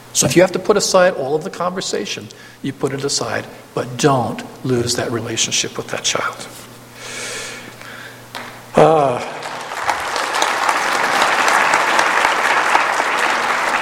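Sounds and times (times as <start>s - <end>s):
speech: 0.2s - 6.7s, 8.8s - 9.4s
brief vocal sound: 8.8s - 9.4s
crowd applause: 8.8s - 13.8s.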